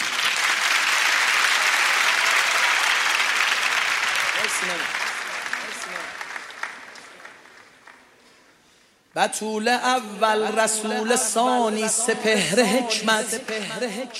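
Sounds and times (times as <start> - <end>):
audience applause: 0.0 - 8.5
speech: 4.6 - 5.0, 9.2 - 14.1.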